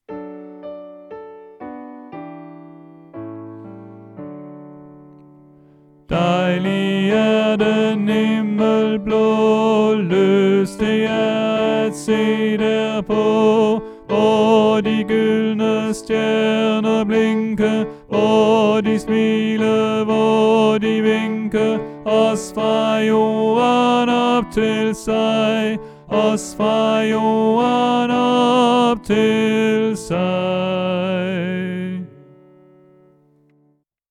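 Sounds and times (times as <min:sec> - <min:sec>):
tenor singing: 0:06.1 - 0:32.4.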